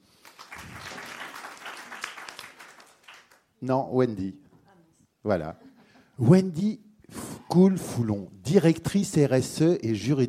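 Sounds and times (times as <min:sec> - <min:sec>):
audience applauding: 0:00.2 - 0:03.5
speech: 0:03.6 - 0:04.4, 0:05.2 - 0:06.8, 0:07.5 - 0:10.2.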